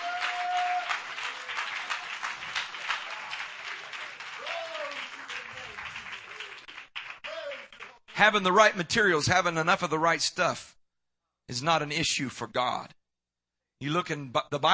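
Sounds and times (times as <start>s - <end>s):
audience clapping hands: 0.0s - 8.7s
speech: 8.2s - 10.8s, 11.5s - 13.0s, 13.8s - 14.7s.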